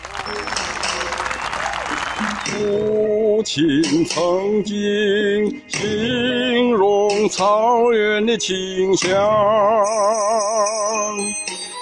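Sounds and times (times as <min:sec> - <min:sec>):
applause: 0:00.0 - 0:02.9
whistle-like tone: 0:00.2 - 0:02.8
speech: 0:02.4 - 0:11.5.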